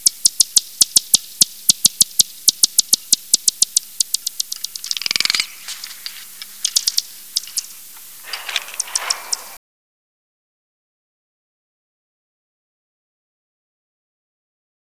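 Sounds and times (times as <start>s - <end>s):
bat echolocation clicks: 0.0s - 9.6s
hissy bursts: 2.4s - 9.6s.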